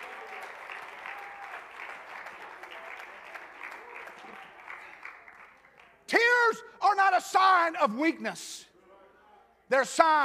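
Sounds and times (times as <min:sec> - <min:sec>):
audience clapping hands: 0:00.0 - 0:06.1
speech: 0:07.0 - 0:08.7, 0:09.7 - 0:10.2.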